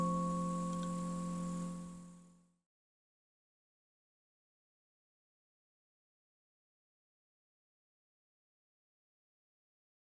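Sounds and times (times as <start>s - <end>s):
21-tone F major kalimbas: 0.0s - 2.1s.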